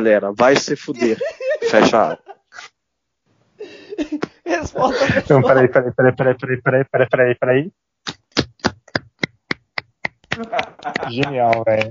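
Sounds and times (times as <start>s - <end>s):
speech: 0.0s - 2.7s, 4.0s - 8.2s, 10.4s - 11.8s
laughter: 1.0s - 2.7s, 3.7s - 7.1s, 10.4s - 11.8s
person clapping hands: 8.1s - 11.8s.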